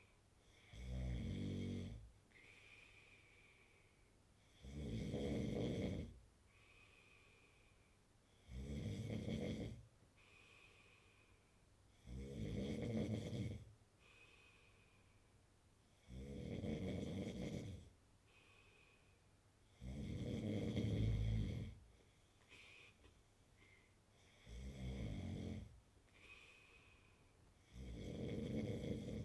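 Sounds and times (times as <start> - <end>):
man snoring: 0.7 - 2.0, 4.6 - 6.1, 8.5 - 9.8, 12.0 - 13.6, 16.1 - 17.8, 19.8 - 21.8, 24.4 - 25.7, 27.7 - 29.2.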